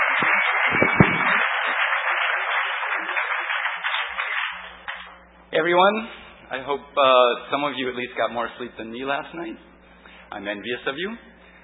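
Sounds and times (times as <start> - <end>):
audience applause: 0.0 - 5.1
speech: 5.6 - 9.7, 10.3 - 11.3.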